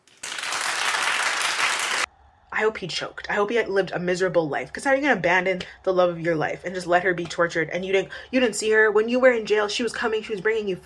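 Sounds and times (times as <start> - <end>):
audience clapping: 0.0 - 2.1
speech: 2.6 - 10.8.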